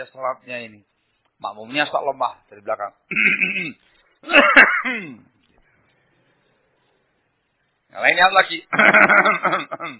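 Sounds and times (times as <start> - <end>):
speech: 0.0 - 5.3, 7.9 - 9.9
voice imitating deliberate throat clearing during prayer: 3.1 - 5.3, 9.5 - 9.9.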